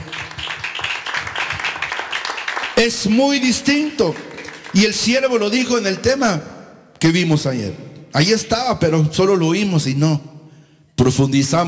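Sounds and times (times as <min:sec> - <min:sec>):
audience clapping hands: 0:00.0 - 0:05.5
speech: 0:02.8 - 0:10.3, 0:11.0 - 0:11.6.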